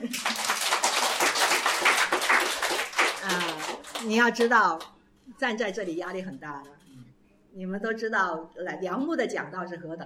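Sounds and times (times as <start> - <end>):
audience applause: 0.0 - 4.2
speech: 4.0 - 6.8, 7.6 - 10.0.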